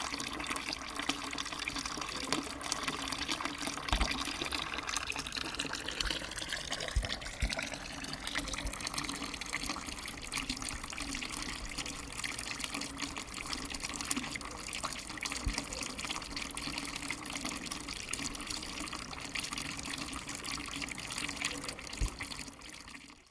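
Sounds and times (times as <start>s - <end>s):
fountain in Borgo Sacco: 0.0s - 23.2s.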